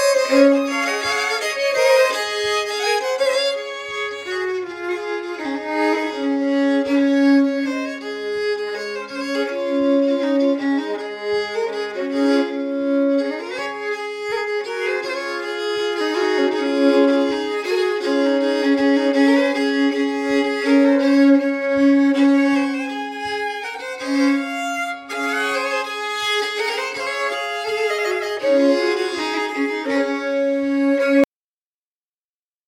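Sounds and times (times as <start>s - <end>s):
violin: 0.0s - 31.3s.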